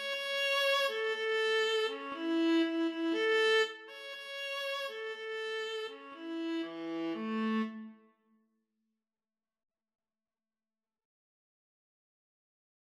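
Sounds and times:
violin and viola duet: 0.0 - 8.0.

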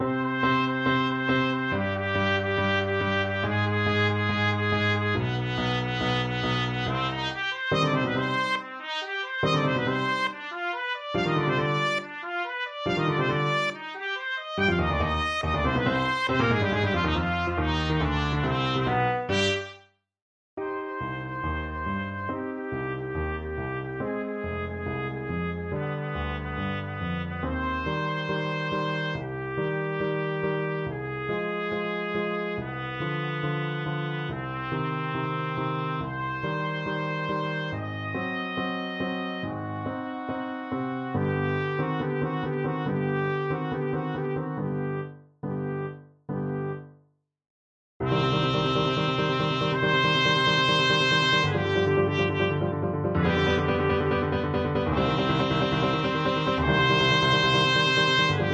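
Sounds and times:
trumpet: 0.0 - 20.0, 20.6 - 46.8, 48.0 - 58.5.

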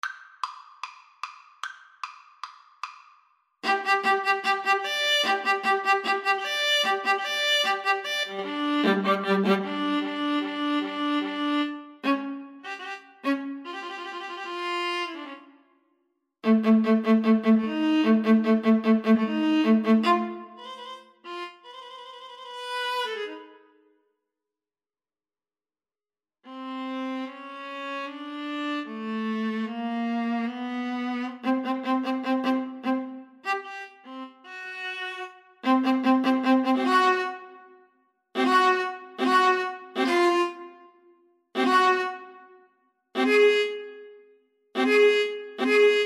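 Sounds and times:
viola duet: 3.6 - 15.5, 16.4 - 23.6, 26.5 - 37.7, 38.4 - 40.8, 41.6 - 42.5, 43.2 - 44.1, 44.8 - 46.0.

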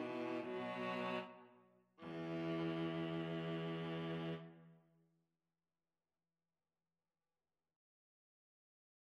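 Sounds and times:
viola: 0.0 - 1.4, 2.0 - 4.6
cello: 0.0 - 4.7.

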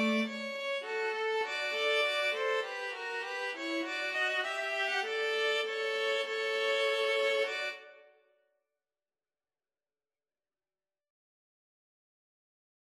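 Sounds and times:
violin and viola duet: 0.0 - 7.8.

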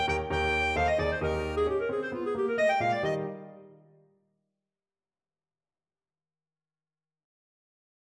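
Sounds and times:
clarinet: 0.0 - 4.0.

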